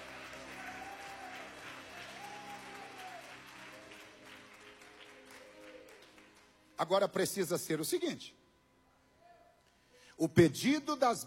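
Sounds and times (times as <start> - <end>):
crowd clapping: 0.0 - 7.2
speech: 6.8 - 8.4, 10.2 - 11.2.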